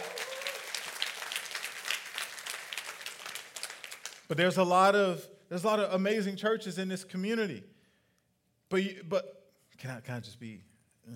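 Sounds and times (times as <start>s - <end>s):
audience applause: 0.0s - 4.3s
speech: 4.3s - 7.8s, 8.7s - 11.1s.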